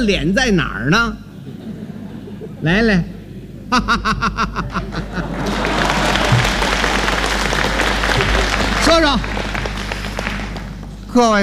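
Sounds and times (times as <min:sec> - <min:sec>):
speech: 0:00.0 - 0:01.2, 0:02.6 - 0:05.6, 0:11.1 - 0:11.4
scattered audience laughter: 0:01.4 - 0:02.7, 0:03.4 - 0:06.8
audience applause at a stage comedy performance: 0:05.0 - 0:11.0.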